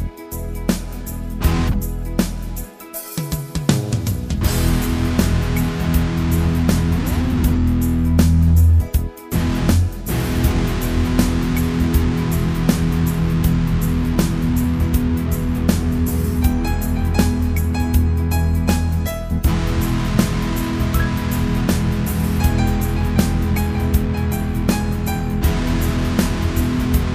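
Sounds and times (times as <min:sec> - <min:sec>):
6-string electric guitar: 0:00.0 - 0:27.1.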